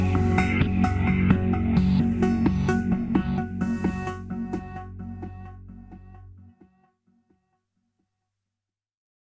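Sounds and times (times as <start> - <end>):
sad music: 0.0 - 6.9.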